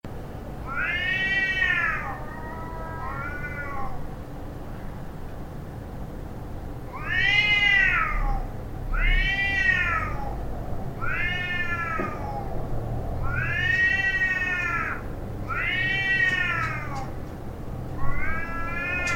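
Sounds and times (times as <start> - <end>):
cats yowling in a fight: 0.6 - 4.1, 6.9 - 17.2, 17.9 - 19.1.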